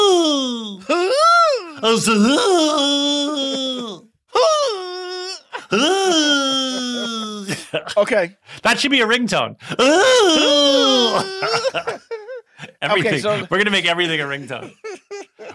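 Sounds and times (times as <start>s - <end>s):
voice imitating a character's dramatic falling wail: 0.0s - 7.5s, 9.8s - 11.8s
speech: 1.8s - 3.2s, 7.7s - 12.1s, 12.8s - 15.0s
laughter: 2.8s - 4.0s, 5.4s - 8.2s, 9.8s - 15.5s.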